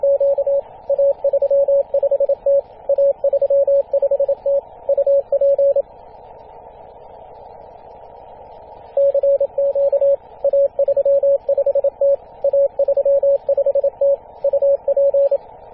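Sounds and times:
CW morse code on 24.898MHz: 0.0s - 5.8s, 9.0s - 15.4s.

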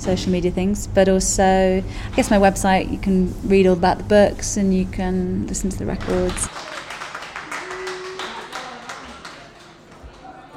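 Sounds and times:
speech: 0.0s - 6.6s
small audience clapping: 6.0s - 10.5s
faint murmur of voices: 7.7s - 10.5s.

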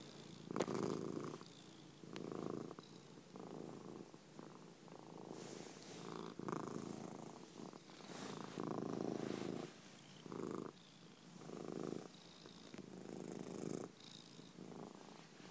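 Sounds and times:
contented tomcat purring: 0.0s - 15.4s.

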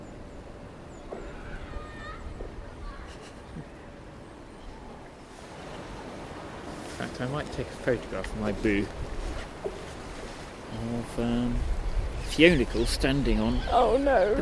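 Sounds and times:
water flowing rapidly under a bridge: 5.1s - 14.4s
speech: 7.2s - 9.1s, 11.2s - 11.7s, 12.3s - 14.4s.

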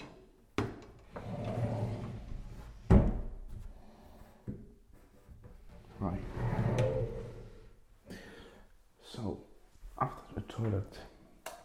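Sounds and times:
sliding cupboard door opening and closing: 0.7s - 3.5s, 5.6s - 7.8s
speech: 10.6s - 11.1s.

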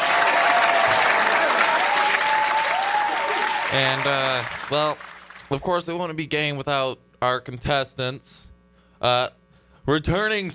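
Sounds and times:
cheers and whistles: 0.0s - 3.8s
crowd applause sound effect: 0.0s - 5.5s
speech: 3.7s - 10.5s.

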